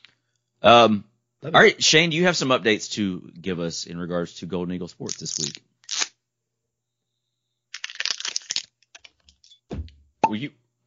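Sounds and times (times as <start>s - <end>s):
speech: 0.6s - 5.7s, 10.3s - 10.8s
new whiskey bottle seal tearing: 7.7s - 9.4s.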